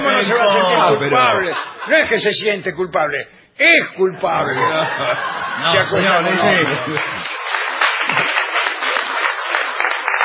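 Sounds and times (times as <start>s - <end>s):
speech: 0.2s - 7.3s
laughter: 1.3s - 2.2s, 4.4s - 7.3s
crowd applause: 5.2s - 10.2s.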